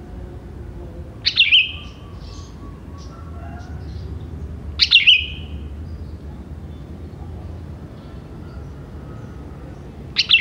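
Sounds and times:
sooty-headed bulbul singing: 1.2 - 3.2, 4.8 - 6.1, 10.2 - 10.4.

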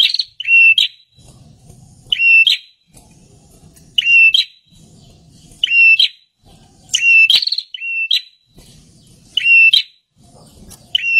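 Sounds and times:
bird calling with short whistled notes: 0.0 - 1.3, 2.0 - 2.9, 3.9 - 10.1, 10.8 - 11.1.

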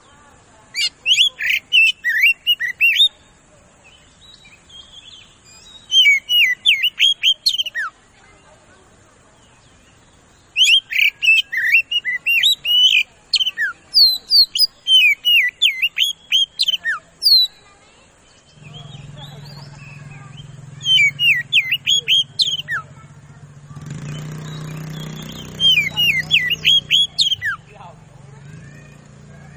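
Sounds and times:
Oriental magpie-robin singing fast loud whistled lure song: 0.8 - 3.2, 4.3 - 8.0, 10.5 - 17.6, 18.6 - 23.0, 23.9 - 27.7.

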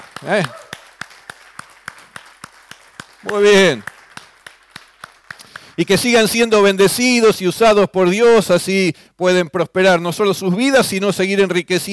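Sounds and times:
church congregation rhythmic hand clapping: 0.0 - 6.8
speech: 0.2 - 0.6, 3.2 - 3.9, 5.8 - 11.9.

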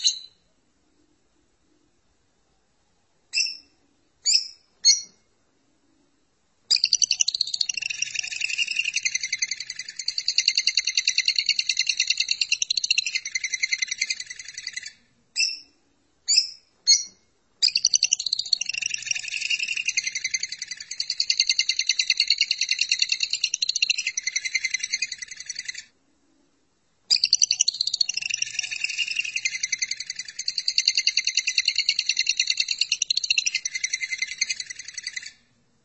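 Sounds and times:
lovebird chattering: 0.0 - 0.4, 6.7 - 15.7, 16.3 - 25.9, 27.1 - 35.4.

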